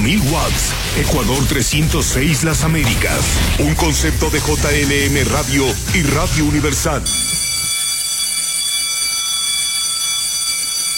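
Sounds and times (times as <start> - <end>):
speech: 0.1 - 7.3
electric bell buzzer ringing: 7.1 - 10.9.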